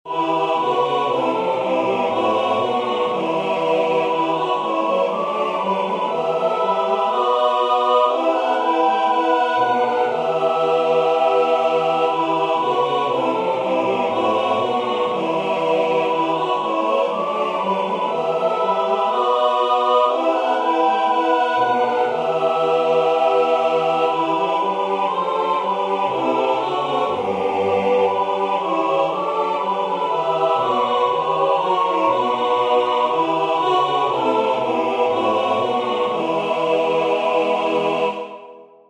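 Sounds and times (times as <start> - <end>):
choir singing: 0.0 - 38.8.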